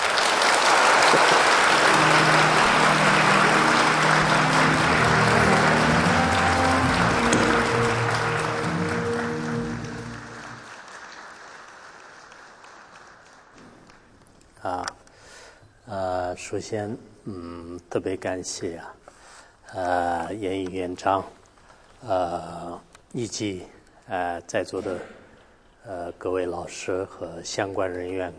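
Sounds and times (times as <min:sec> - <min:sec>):
audience applause: 0:00.0 - 0:14.1
speech: 0:16.5 - 0:19.0, 0:19.7 - 0:21.4, 0:22.0 - 0:25.2, 0:25.8 - 0:28.3.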